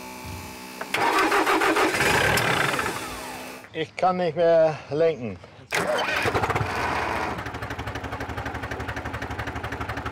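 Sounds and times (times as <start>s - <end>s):
tractor engine starting: 0.8s - 3.6s, 5.7s - 10.1s
speech: 3.8s - 6.3s.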